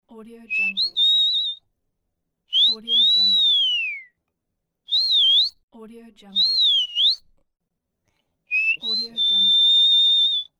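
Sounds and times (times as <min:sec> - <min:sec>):
person whistling: 0:00.6 - 0:01.6, 0:02.6 - 0:04.1, 0:04.9 - 0:05.6, 0:06.4 - 0:07.2, 0:08.5 - 0:10.5.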